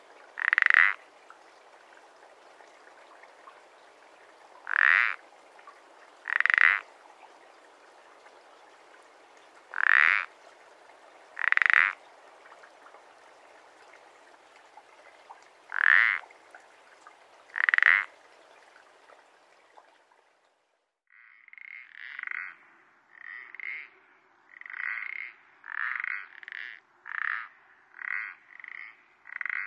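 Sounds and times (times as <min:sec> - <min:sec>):
common parsley frog croaking: 0:00.4 - 0:01.0, 0:04.6 - 0:05.2, 0:06.2 - 0:06.9, 0:09.7 - 0:10.3, 0:11.4 - 0:12.0, 0:15.7 - 0:16.2, 0:17.5 - 0:18.1, 0:21.1 - 0:29.6.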